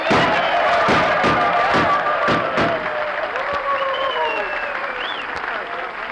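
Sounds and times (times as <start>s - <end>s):
gunshots: 0.0s - 3.1s
applause: 0.0s - 6.1s.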